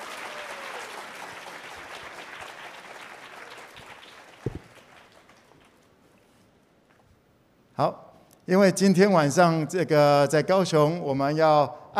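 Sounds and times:
audience applause: 0:00.0 - 0:05.8
speech: 0:07.8 - 0:11.9.

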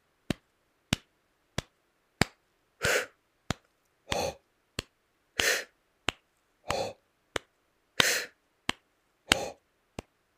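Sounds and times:
sharp steady hand claps keeping an even beat: 0:00.3 - 0:02.4, 0:03.5 - 0:04.2, 0:04.8 - 0:10.2
breathy exhales and inhales: 0:02.8 - 0:03.2, 0:05.4 - 0:05.7, 0:08.0 - 0:08.4.

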